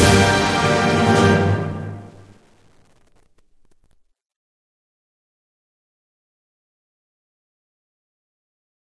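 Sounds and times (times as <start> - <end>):
music: 0.0 - 2.4.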